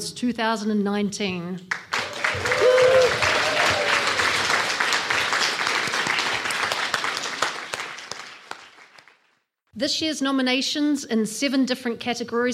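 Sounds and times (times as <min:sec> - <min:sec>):
speech: 0:00.0 - 0:02.5, 0:09.8 - 0:12.5
audience applause at the Mayor's Pride Awards 2019: 0:01.7 - 0:09.4.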